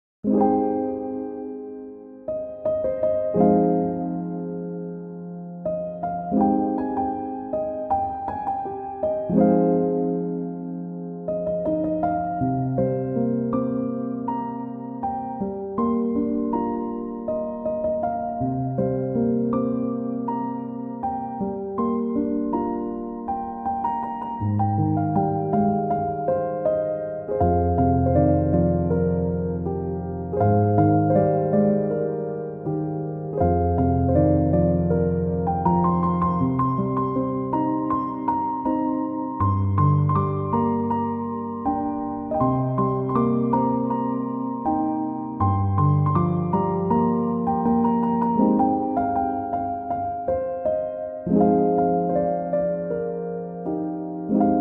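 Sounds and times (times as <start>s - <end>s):
chill piano instrumental: 0.2s - 54.6s.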